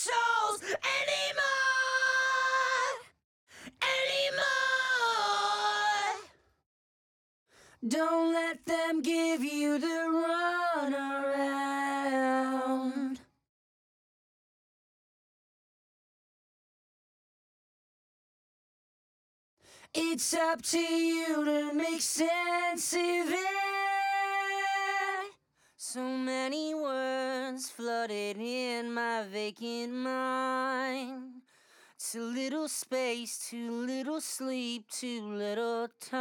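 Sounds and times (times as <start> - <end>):
main vocals: 0.0 - 6.4, 7.8 - 13.4, 19.8 - 31.4, 32.0 - 36.1.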